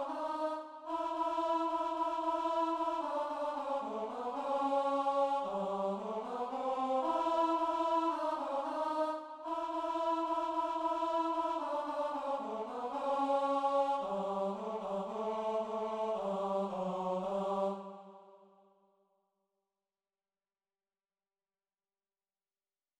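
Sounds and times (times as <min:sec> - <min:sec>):
tenor singing a sacred mass: 0:00.0 - 0:18.2.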